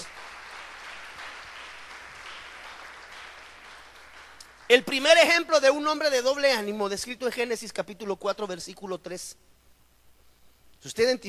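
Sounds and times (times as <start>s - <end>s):
audience applauding: 0.0s - 4.8s
speech: 4.7s - 9.5s, 10.8s - 11.2s.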